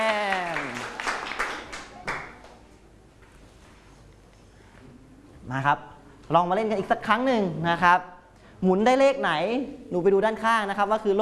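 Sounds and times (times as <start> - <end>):
clapping for a classmate: 0.0 - 2.6
speech: 5.5 - 11.2.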